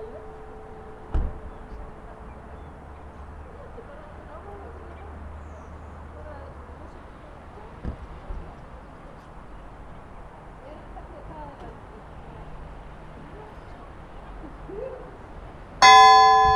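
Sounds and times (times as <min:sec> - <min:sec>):
church bells of Laugarneskirkja: 0:00.0 - 0:03.6, 0:15.8 - 0:16.5.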